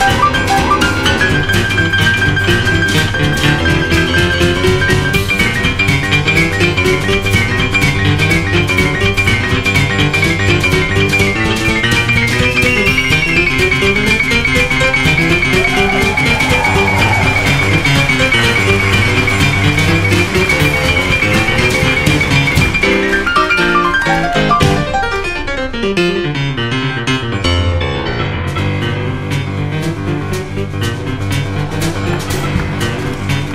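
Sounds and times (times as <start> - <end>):
fast piano music: 0.0 - 33.5.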